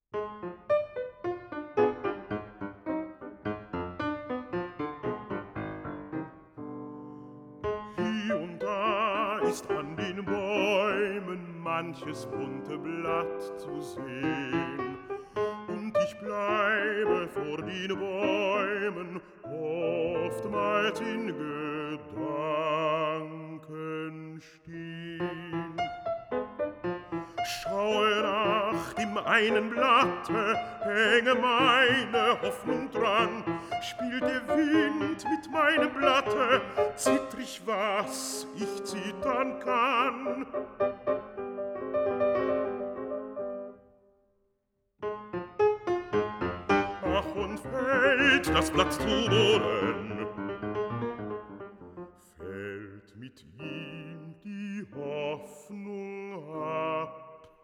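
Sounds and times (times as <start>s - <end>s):
piano: 0.0s - 57.6s
person singing a song cycle: 7.9s - 25.8s, 27.4s - 40.6s, 47.0s - 50.4s, 52.4s - 57.5s.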